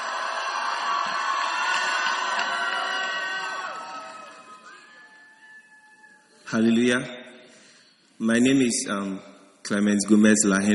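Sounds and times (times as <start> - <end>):
church congregation in a hall applauding and cheering: 0.0 - 6.4
speech: 6.5 - 7.2, 8.2 - 10.7.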